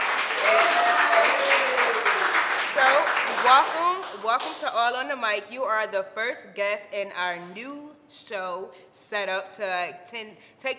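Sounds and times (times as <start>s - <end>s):
round of applause: 0.0s - 4.2s
speech: 3.5s - 10.7s.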